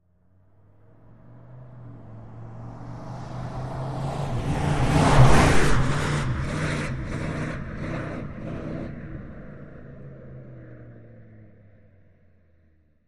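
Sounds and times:
Dodge Ram passing fast with shake: 0.8s - 11.2s.

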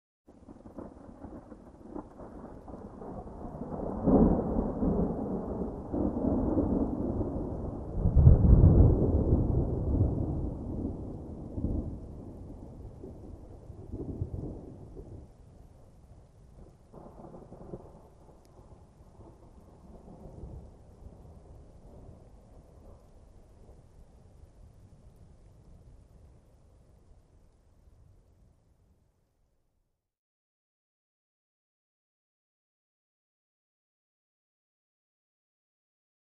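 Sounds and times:
light rain on pine: 0.3s - 6.8s, 11.0s - 29.2s
receding thunder: 0.3s - 15.3s, 16.6s - 23.0s.

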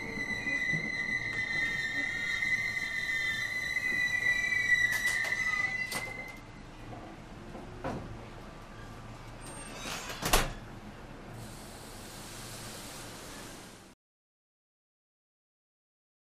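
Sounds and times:
commuter train interior starting and stopping: 0.0s - 8.3s, 11.3s - 14.0s.

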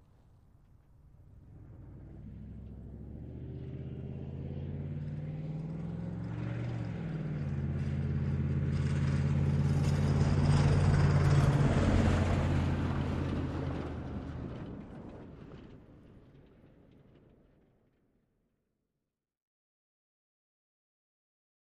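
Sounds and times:
Humvee driving: 1.1s - 16.0s.

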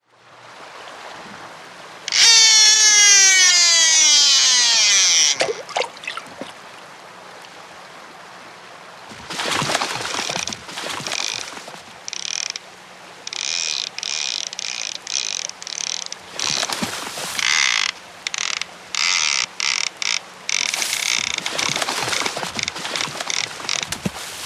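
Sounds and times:
fishing reel cast: 2.1s - 5.7s, 10.0s - 12.6s, 13.2s - 24.0s.

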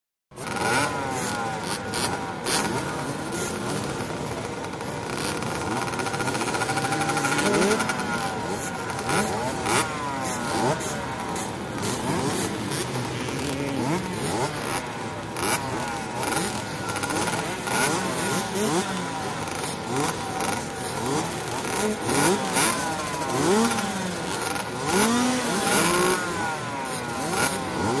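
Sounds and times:
50 cc motorbikes idling at a race starting line: 0.4s - 27.9s.

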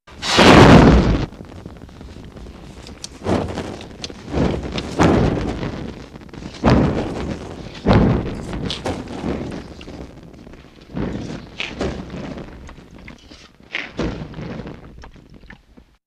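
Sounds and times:
larger chemical flame flaring up as wind blows on fuel: 0.1s - 16.0s.

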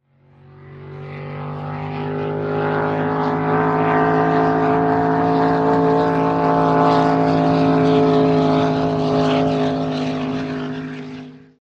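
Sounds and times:
drag boat racing: 0.1s - 11.6s.

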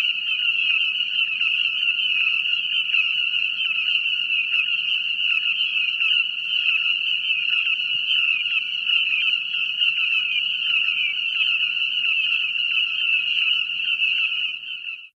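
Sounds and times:
frogs croaking in chorus: 0.0s - 15.1s.

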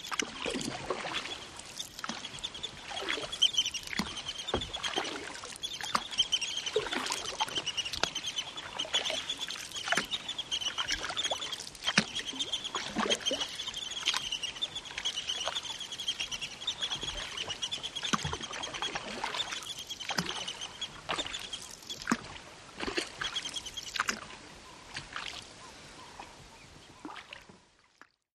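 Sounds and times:
plovers calling: 0.0s - 21.8s
canoe paddling on the Zambezi in Zimbabwe: 0.0s - 27.6s
Zambezi atmosphere in Zimbabwe: 0.0s - 27.9s.

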